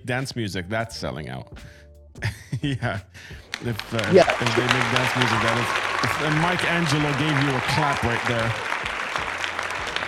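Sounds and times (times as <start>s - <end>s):
speech: 0.1s - 8.8s
laughter: 2.2s - 10.0s
clapping: 3.4s - 10.0s.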